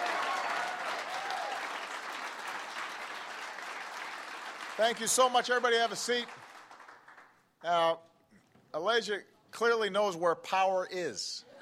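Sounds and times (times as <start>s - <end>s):
audience applause: 0.0s - 7.4s
speech: 4.8s - 6.4s, 7.6s - 8.1s, 8.7s - 11.6s.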